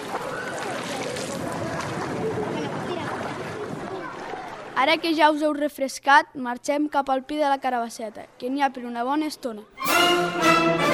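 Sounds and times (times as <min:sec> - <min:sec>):
splashing into a cold pond: 0:00.0 - 0:04.8
speech: 0:04.8 - 0:10.9.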